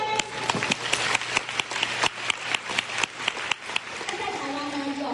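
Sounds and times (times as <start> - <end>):
audience applause: 0.1 - 5.0.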